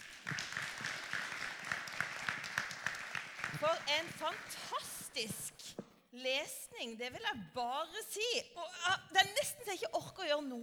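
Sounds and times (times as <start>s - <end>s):
audience applause: 0.0s - 5.1s
speech: 3.6s - 5.4s, 6.2s - 10.6s.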